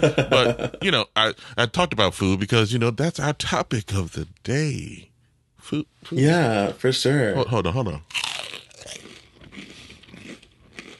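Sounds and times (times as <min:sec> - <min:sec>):
laughter: 0:00.0 - 0:00.8
speech: 0:00.0 - 0:09.0
crunchy chewing of a chicken finger: 0:08.1 - 0:10.9.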